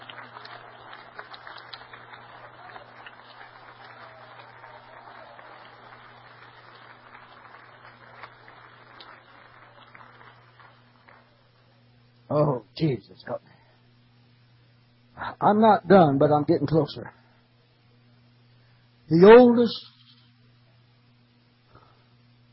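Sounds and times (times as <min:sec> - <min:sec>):
audience clapping hands: 0:00.0 - 0:11.7
speech: 0:12.3 - 0:13.5, 0:15.4 - 0:17.2, 0:19.1 - 0:19.9.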